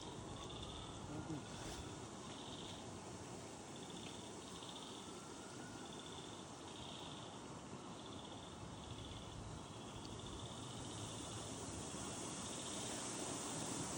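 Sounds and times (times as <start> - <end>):
frogs: 0.0 - 13.9.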